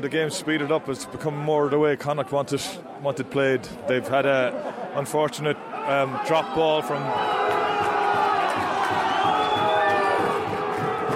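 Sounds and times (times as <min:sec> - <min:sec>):
speech: 0:00.0 - 0:07.5
large rugby stadium crowd cheering: 0:05.6 - 0:11.1
whistles: 0:08.9 - 0:10.2.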